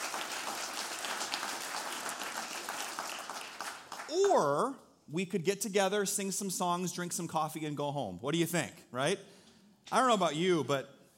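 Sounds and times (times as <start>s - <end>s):
audience clapping: 0.0s - 4.7s
speech: 4.1s - 11.0s.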